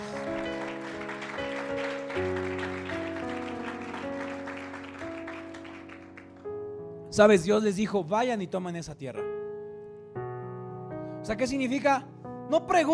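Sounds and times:
audience applause: 0.0 - 6.4
speech: 7.2 - 9.4, 11.3 - 12.9.

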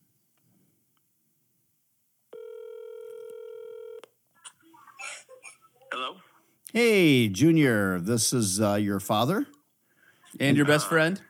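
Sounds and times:
phone dialing tones: 2.3 - 4.1
speech: 6.0 - 9.5, 10.4 - 11.2.

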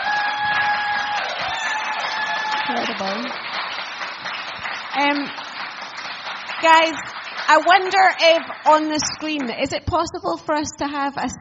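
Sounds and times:
people whooping: 0.0 - 3.3
crowd applauding: 0.0 - 9.7
speech: 2.7 - 3.5, 5.0 - 5.4, 6.6 - 11.3.

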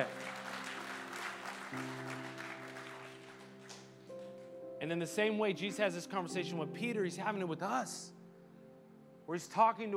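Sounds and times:
audience clapping: 0.0 - 4.6
speech: 1.7 - 2.0, 4.8 - 8.2, 9.3 - 9.9.

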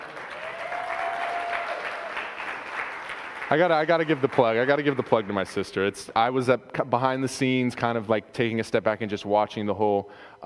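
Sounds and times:
crowd applause: 0.0 - 5.7
speech: 3.5 - 10.4.

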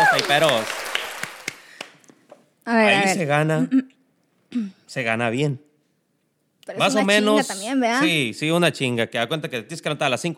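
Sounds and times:
applause: 0.0 - 2.1
speech: 0.2 - 0.8, 2.6 - 5.7, 6.7 - 10.3.

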